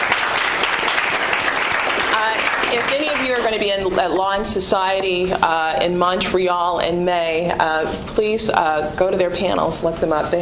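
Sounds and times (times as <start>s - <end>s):
audience applause thanking two student commentators: 0.0s - 3.8s
speech: 3.6s - 10.4s.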